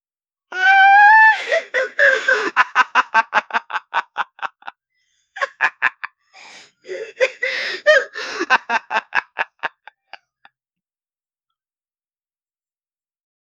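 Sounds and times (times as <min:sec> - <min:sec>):
22-year-old man laughing: 0:01.4 - 0:04.7, 0:05.4 - 0:06.1, 0:06.9 - 0:10.5.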